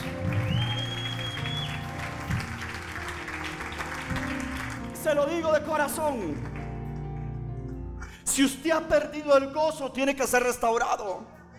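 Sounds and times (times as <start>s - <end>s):
audience applauding: 0.0s - 7.4s
speech: 5.1s - 6.5s, 8.4s - 11.4s.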